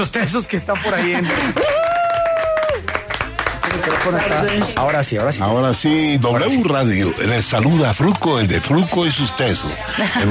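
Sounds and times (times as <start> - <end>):
speech: 0.0 - 1.8, 3.8 - 10.2
laughter: 0.6 - 2.4, 9.8 - 10.2
applause: 0.6 - 6.0.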